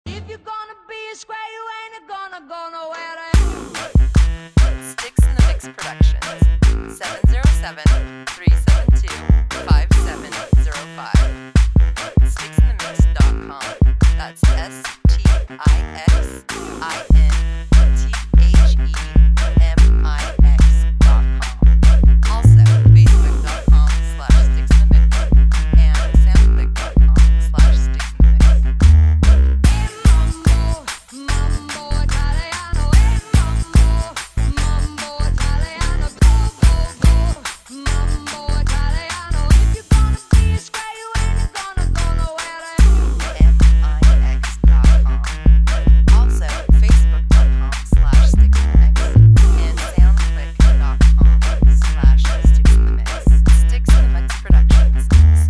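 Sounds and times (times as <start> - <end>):
mambo music: 3.4 - 55.4.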